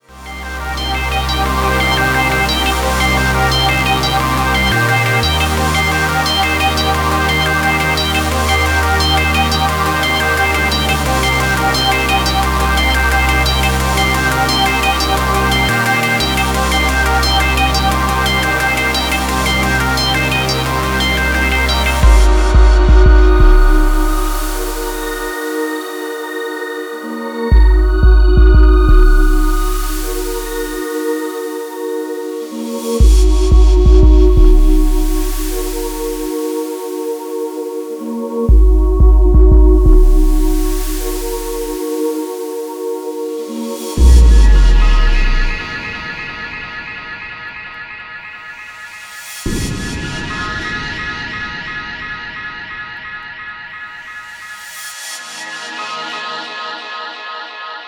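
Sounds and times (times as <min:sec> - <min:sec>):
bass-heavy remix: 0:00.0 - 0:25.6, 0:27.5 - 0:31.0, 0:33.0 - 0:36.4, 0:38.5 - 0:42.0, 0:44.0 - 0:47.5.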